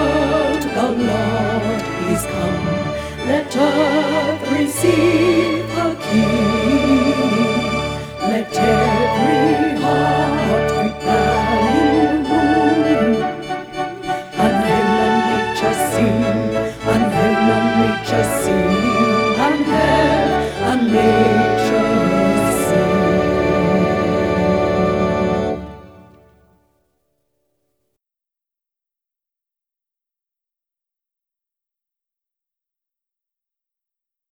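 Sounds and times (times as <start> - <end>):
tenor singing a Christmas carol: 0.0 - 26.3.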